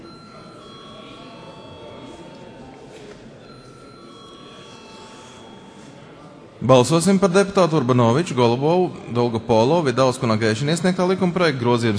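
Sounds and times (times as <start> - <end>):
parliament voting electric bell ringing: 0.0 - 6.4
murmuring voices: 0.0 - 9.5
speech: 6.6 - 11.9.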